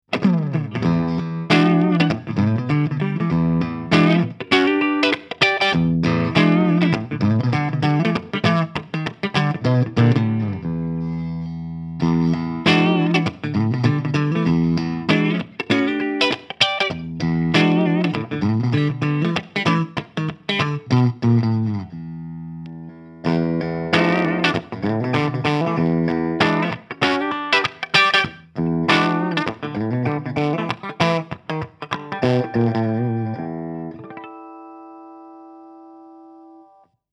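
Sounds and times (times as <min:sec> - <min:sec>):
Godin Summit Classic SG clean electric guitar: 0:00.1 - 0:37.0
guitar pickup switch click: 0:22.6 - 0:23.2.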